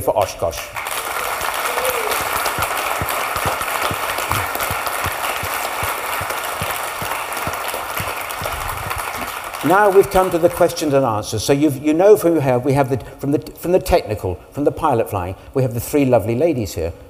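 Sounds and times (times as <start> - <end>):
speech: 0.0 - 0.9, 9.6 - 17.0
audience applause for the volunteers for Oshkosh: 0.8 - 10.6.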